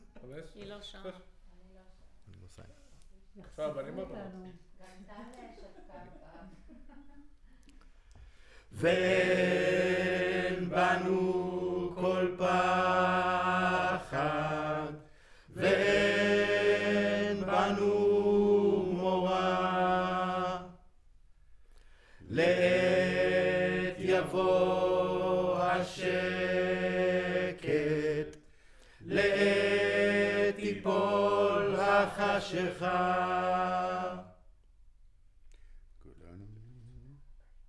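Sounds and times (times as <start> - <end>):
choir recorded with center U47 microphone: 8.7 - 21.0, 22.2 - 34.6.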